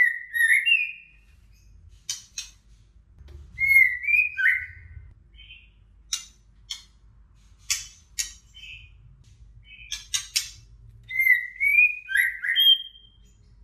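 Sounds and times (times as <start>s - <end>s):
female white-rumped shama whistled song: 0.0s - 1.6s, 3.6s - 5.8s, 8.5s - 9.0s, 9.6s - 13.4s.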